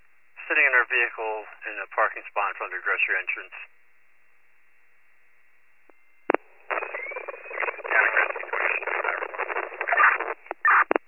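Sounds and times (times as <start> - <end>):
radio static: 0.4 - 3.6, 6.3 - 11.0
speech: 0.5 - 3.8.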